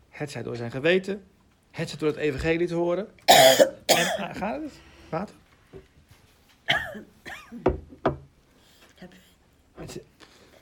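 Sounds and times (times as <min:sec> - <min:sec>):
speech: 0:00.2 - 0:05.9, 0:06.9 - 0:07.8, 0:09.8 - 0:10.1
coughing and throat clearing: 0:03.3 - 0:04.4, 0:06.7 - 0:07.7
quiet breathy sounds: 0:04.7 - 0:05.2, 0:08.5 - 0:09.4, 0:10.2 - 0:10.5.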